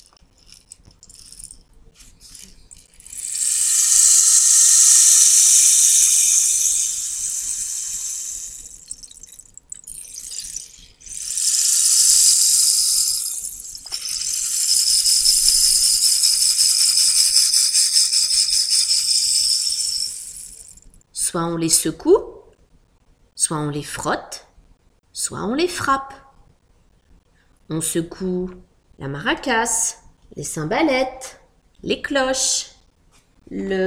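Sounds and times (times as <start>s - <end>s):
rain stick instrument imitating rain: 0.0s - 20.8s
speech: 21.4s - 22.2s, 23.5s - 24.4s, 25.3s - 26.2s, 27.7s - 29.8s, 30.4s - 32.6s, 33.6s - 33.8s.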